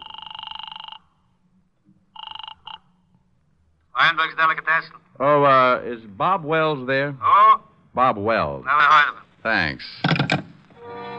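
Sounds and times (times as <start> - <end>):
warbling telephone ringing tone after dialing: 0.0 - 1.3, 2.1 - 3.0
speech: 4.1 - 7.4, 8.0 - 10.4.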